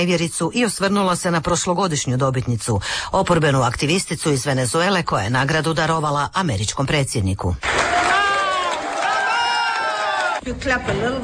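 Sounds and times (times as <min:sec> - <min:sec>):
speech: 0:00.0 - 0:07.9, 0:10.4 - 0:11.2
colleagues whooping and cheering for a prize winner: 0:07.7 - 0:10.4.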